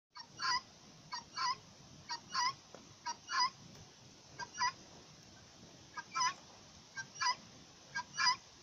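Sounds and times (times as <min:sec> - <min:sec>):
Iranian Bec chicken calling: 0:00.2 - 0:03.6, 0:04.4 - 0:04.8, 0:05.9 - 0:08.5.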